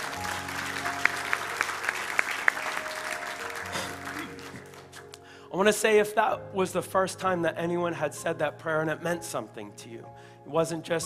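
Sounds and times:
audience applauding after a prayer: 0.0s - 5.2s
speech: 5.5s - 11.0s.

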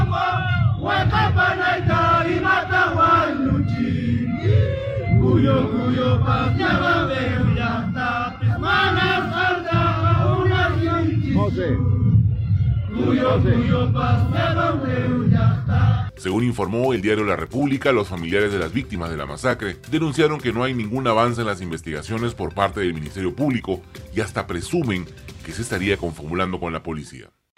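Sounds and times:
crowd of protesters chanting at marches in Juliaca and Puno: 0.0s - 12.0s, 12.9s - 16.1s
speech: 13.1s - 15.5s, 16.2s - 27.4s.

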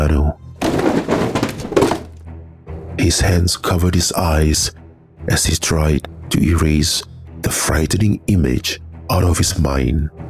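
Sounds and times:
speech: 0.0s - 0.4s, 3.0s - 10.2s
body slamming against the side of a sturdy bookshelf: 0.6s - 2.1s.

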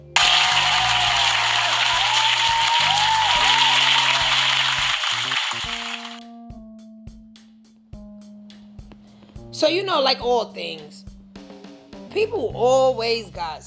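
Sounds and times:
audience applause: 0.0s - 6.2s
speech: 9.6s - 11.0s, 12.2s - 13.6s.

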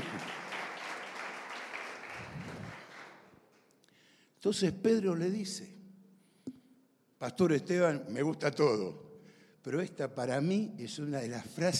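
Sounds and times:
audience applauding: 0.0s - 3.4s
speech: 4.4s - 5.8s, 7.2s - 9.0s, 9.6s - 11.7s.

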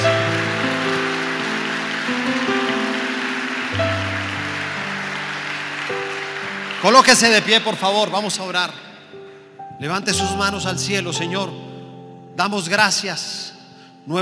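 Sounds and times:
audience applause: 0.0s - 8.8s
sustained keyboard or organ chords: 0.0s - 14.2s
speech: 6.8s - 8.9s, 9.8s - 11.7s, 12.4s - 14.2s.

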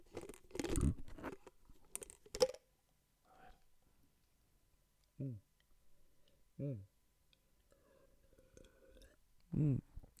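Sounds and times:
plastic water bottle crinkling: 0.1s - 2.6s
speech: 6.6s - 6.9s.

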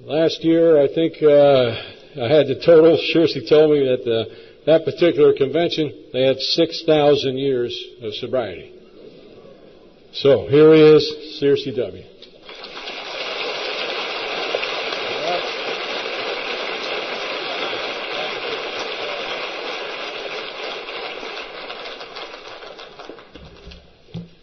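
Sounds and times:
speech: 0.0s - 8.8s, 10.1s - 12.1s
large crowd clapping: 12.3s - 23.9s.

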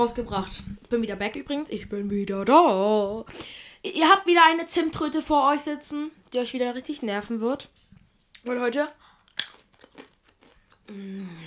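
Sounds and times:
speech: 0.0s - 7.8s, 8.4s - 9.5s, 10.9s - 11.4s
crunching dough-coated peanuts: 9.2s - 10.8s.

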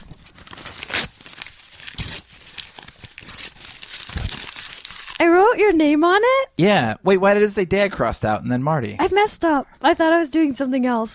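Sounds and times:
plastic wrap crinkling and tearing when unwrapping a cassette tape: 0.0s - 5.4s
speech: 5.6s - 11.1s.

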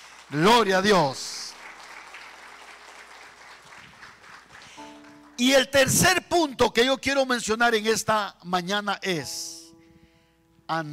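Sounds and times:
applause: 0.0s - 5.9s
speech: 0.3s - 1.2s, 5.4s - 9.6s, 10.7s - 10.9s.

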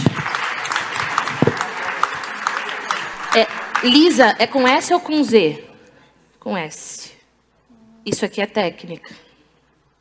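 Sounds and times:
audience applause: 0.0s - 4.4s
speech: 3.4s - 5.7s, 6.4s - 7.2s, 8.0s - 9.2s.

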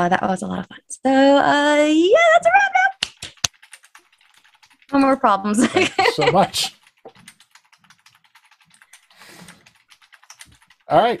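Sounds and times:
speech: 0.0s - 2.9s, 4.9s - 6.8s, 10.9s - 11.1s
typing on a computer keyboard: 2.9s - 5.2s, 6.6s - 11.1s
laughter: 5.5s - 6.7s.

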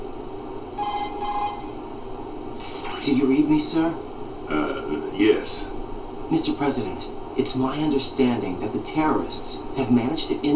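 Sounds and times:
steady hum: 0.0s - 10.5s
Metal Gear Solid 2 nano communication codec call ringing: 0.8s - 1.8s
speech: 3.0s - 10.5s.

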